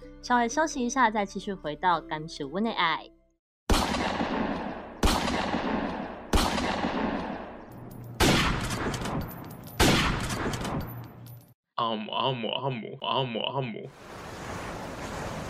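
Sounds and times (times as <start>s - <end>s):
speech: 0.2s - 3.2s, 11.8s - 14.2s
gunfire: 3.7s - 10.9s.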